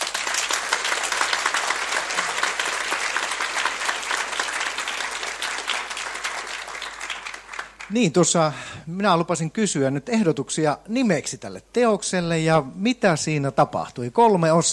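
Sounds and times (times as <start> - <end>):
audience applause for the director of a stage performance: 0.0 - 8.0
speech: 7.9 - 14.7.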